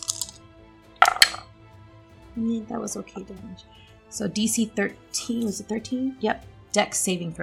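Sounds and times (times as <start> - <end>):
dice clattering on a hard surface: 0.0 - 0.4, 1.0 - 1.4
speech: 2.4 - 7.4.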